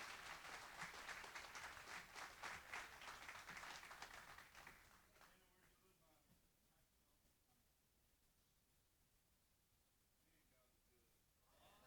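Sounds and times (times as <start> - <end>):
audience applause for the band: 0.0 - 5.0.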